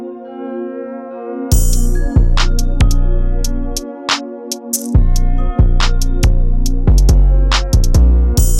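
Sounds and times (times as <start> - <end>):
dark trap beat: 1.5 - 8.5.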